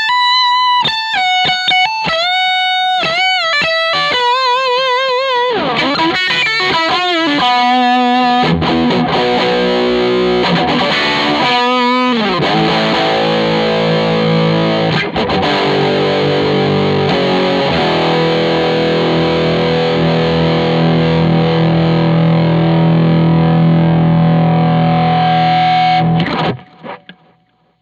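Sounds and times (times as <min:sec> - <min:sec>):
big overdriven guitar chords: 0:00.0 - 0:27.6.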